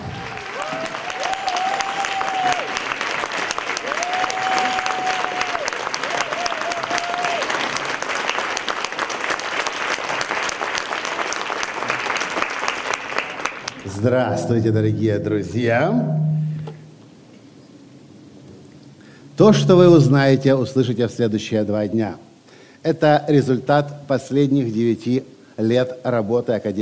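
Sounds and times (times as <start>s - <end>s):
crowd cheers and whistles: 0.0s - 2.8s, 3.8s - 7.5s
crowd applauding: 0.0s - 14.0s
speech: 14.0s - 16.2s, 19.4s - 26.8s.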